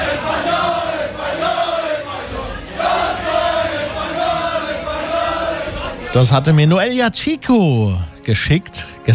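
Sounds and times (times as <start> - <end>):
fans cheering celebrating a World Cup win: 0.0 - 6.2
speech: 6.1 - 9.1.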